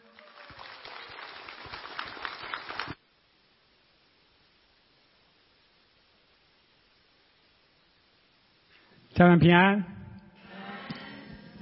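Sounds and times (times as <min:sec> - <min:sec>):
audience applause: 0:00.0 - 0:03.0
speech: 0:09.2 - 0:09.9.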